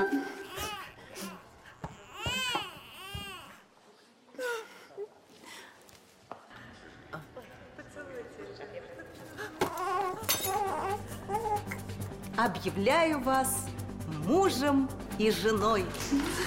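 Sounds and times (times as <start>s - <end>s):
infant lying in a box wailing during a wedding ceremony: 0.2s - 3.6s, 9.6s - 11.8s
speech: 12.8s - 13.6s, 14.3s - 16.4s.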